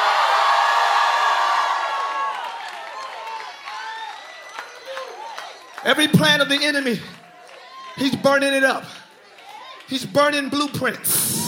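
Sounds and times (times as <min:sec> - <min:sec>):
audience screaming and cheering: 0:00.0 - 0:11.4
scattered clapping: 0:02.3 - 0:11.1
speech: 0:05.8 - 0:07.2, 0:08.0 - 0:09.0, 0:09.9 - 0:11.4.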